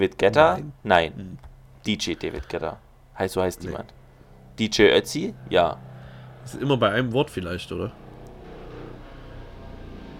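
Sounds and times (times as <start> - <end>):
speech: 0.0 - 4.0, 4.6 - 8.0
helicopter flying overhead: 3.6 - 10.1.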